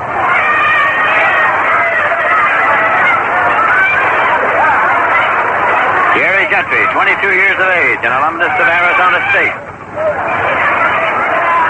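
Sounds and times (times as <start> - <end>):
ballpark crowd reacting to foul ball: 0.0 - 11.6
speech: 6.6 - 10.4.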